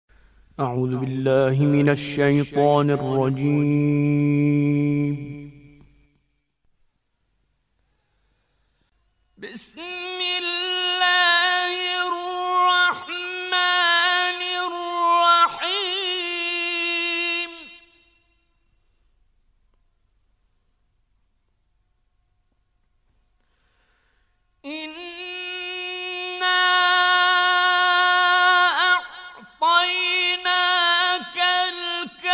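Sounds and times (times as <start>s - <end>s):
Mujawwad melodic recitation: 0.6s - 5.8s, 9.4s - 17.9s, 24.7s - 32.3s.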